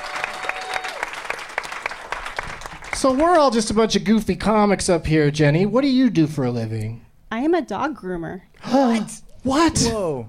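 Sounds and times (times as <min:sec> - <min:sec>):
audience applause: 0:00.0 - 0:03.5
speech: 0:03.0 - 0:10.2.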